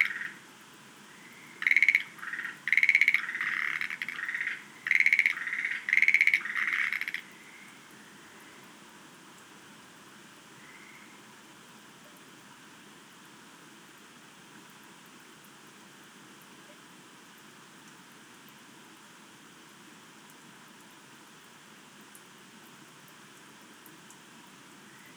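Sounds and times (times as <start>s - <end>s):
Schlegel's green tree frogs rattling croaks: 0.0s - 0.4s, 1.1s - 8.4s, 10.6s - 11.2s.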